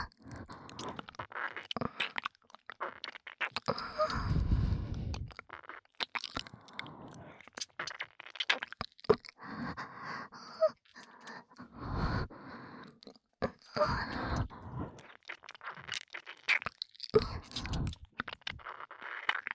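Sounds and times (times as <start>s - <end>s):
ear licking sounds: 0.0s - 9.8s, 10.7s - 19.5s
relaxed breathing: 3.7s - 5.3s, 6.5s - 7.4s, 9.4s - 13.0s, 13.7s - 15.1s.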